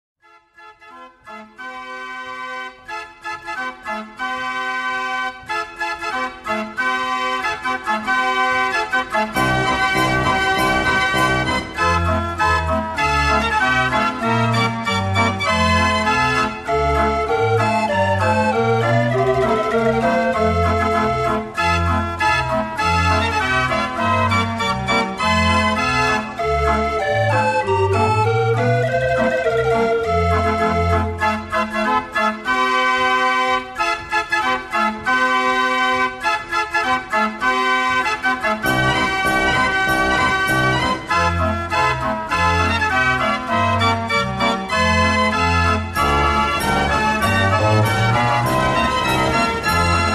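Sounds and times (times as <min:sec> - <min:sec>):
Dutch street barrel organ playing: 0:00.8 - 0:50.1.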